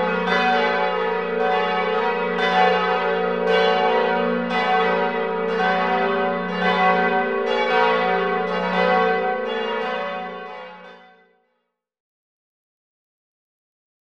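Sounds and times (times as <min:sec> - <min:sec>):
festive ringing of church bells: 0:00.0 - 0:11.2.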